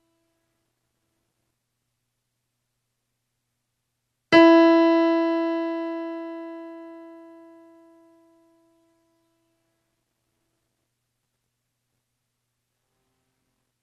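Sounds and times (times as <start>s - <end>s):
piano note for pitch matching: 4.4s - 8.7s.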